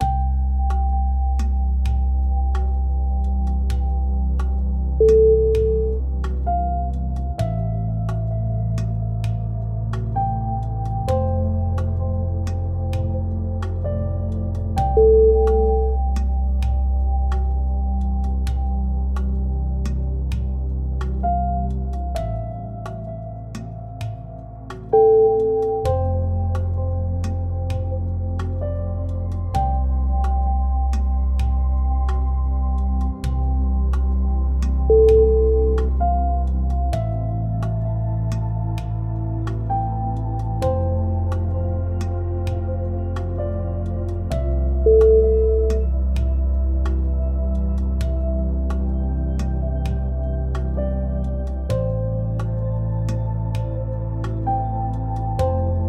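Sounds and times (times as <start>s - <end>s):
meditative desert music: 0.0s - 55.8s.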